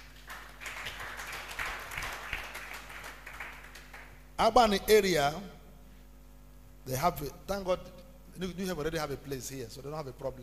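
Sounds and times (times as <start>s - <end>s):
audience clapping: 0.0s - 4.2s
low constant hum: 0.0s - 10.4s
speech: 4.4s - 5.6s, 6.8s - 10.4s.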